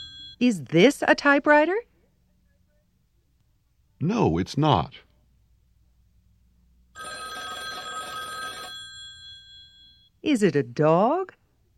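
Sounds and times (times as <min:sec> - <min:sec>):
telephone bell ringing: 0:00.0 - 0:00.4, 0:07.0 - 0:10.1
faint ringing hum: 0:00.0 - 0:03.1, 0:05.5 - 0:10.4
speech: 0:00.4 - 0:01.9, 0:04.0 - 0:05.0, 0:10.2 - 0:11.4.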